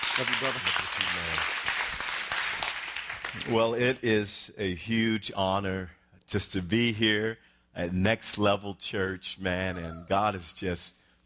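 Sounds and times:
church audience clapping to welcome a pastor: 0:00.0 - 0:03.8
speech: 0:00.2 - 0:01.7, 0:03.3 - 0:11.0.

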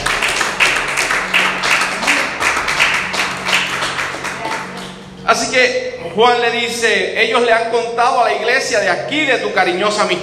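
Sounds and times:
audience applause: 0:00.0 - 0:05.0
speech: 0:05.3 - 0:10.2.

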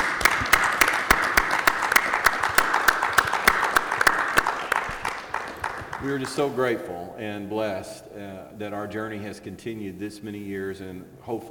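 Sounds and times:
audience round of applause: 0:00.0 - 0:06.7
speech: 0:06.0 - 0:11.4.

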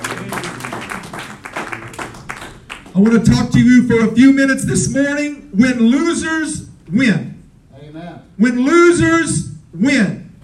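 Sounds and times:
audience hand clapping: 0:00.0 - 0:03.5
speech: 0:03.0 - 0:07.3, 0:08.4 - 0:10.2.

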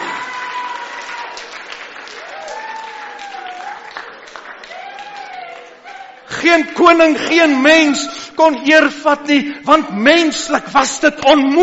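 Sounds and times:
church congregation applauding and cheering: 0:00.0 - 0:07.0
speech: 0:06.4 - 0:11.6.

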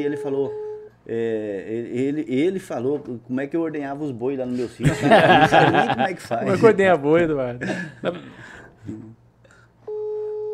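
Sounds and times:
phone line ringing unanswered: 0:00.0 - 0:00.9, 0:09.9 - 0:10.5
speech: 0:00.0 - 0:09.2
laughter: 0:04.8 - 0:06.8.

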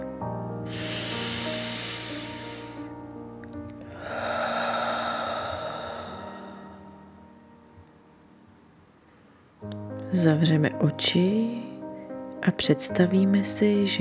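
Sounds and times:
deep breath in and out: 0:00.6 - 0:07.4
speech: 0:10.2 - 0:11.6, 0:12.4 - 0:13.9.

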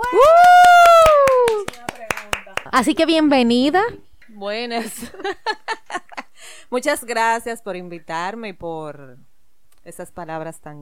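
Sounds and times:
person cheering: 0:00.0 - 0:01.8
hands clapping: 0:00.0 - 0:03.1
speech: 0:02.8 - 0:05.6, 0:06.7 - 0:10.7
laughter: 0:04.8 - 0:06.3.

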